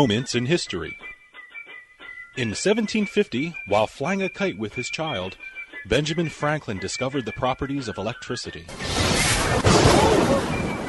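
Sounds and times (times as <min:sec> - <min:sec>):
speech: 0:00.0 - 0:01.1, 0:02.4 - 0:10.5
lightning bolt strike: 0:08.7 - 0:10.8.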